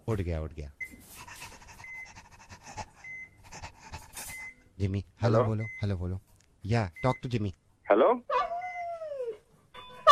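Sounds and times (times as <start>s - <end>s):
speech: 0.1s - 1.3s, 4.8s - 8.4s
dog panting: 1.1s - 4.6s.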